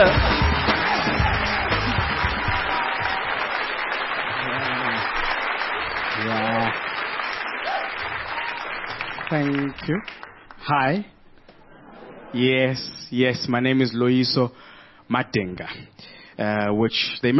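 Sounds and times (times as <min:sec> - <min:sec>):
studio audience applause: 0:00.0 - 0:11.0
speech: 0:09.3 - 0:11.2, 0:12.3 - 0:17.3.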